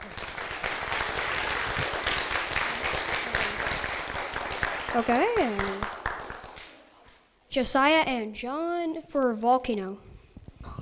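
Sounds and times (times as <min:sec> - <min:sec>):
audience applause: 0:00.0 - 0:06.8
speech: 0:05.0 - 0:05.9, 0:07.6 - 0:10.1.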